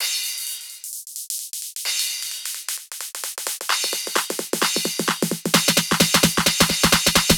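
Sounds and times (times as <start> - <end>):
snare roll: 2.2 - 7.3.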